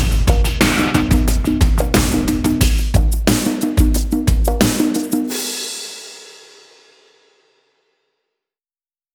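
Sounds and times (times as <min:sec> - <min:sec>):
bass: 0:00.0 - 0:03.1
cheerful drums: 0:00.0 - 0:07.2.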